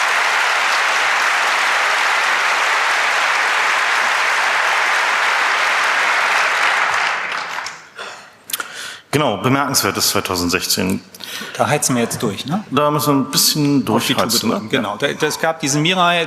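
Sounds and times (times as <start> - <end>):
audience applause: 0.0 - 8.0
speech: 9.2 - 16.2.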